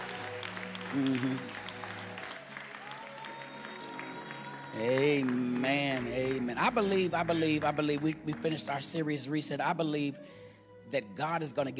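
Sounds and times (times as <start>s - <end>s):
audience clapping: 0.0s - 9.3s
speech: 0.9s - 1.6s, 4.7s - 11.7s.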